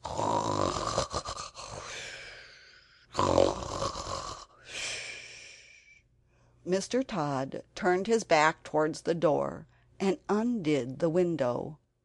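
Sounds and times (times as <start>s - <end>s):
loud snoring: 0.0s - 2.2s, 3.1s - 4.6s
speech: 6.7s - 11.8s.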